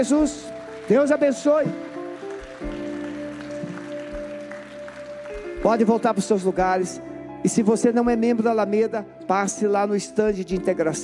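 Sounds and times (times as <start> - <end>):
speech: 0.0 - 2.0, 5.6 - 11.0
audience applause: 0.0 - 6.6.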